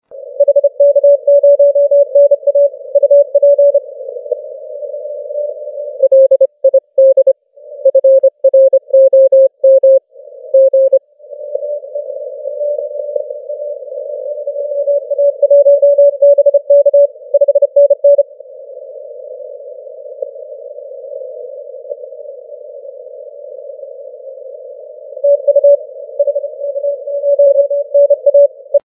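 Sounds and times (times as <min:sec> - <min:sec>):
40m band CW Morse code tones: 0:00.3 - 0:03.8, 0:05.4 - 0:18.2, 0:25.2 - 0:28.8.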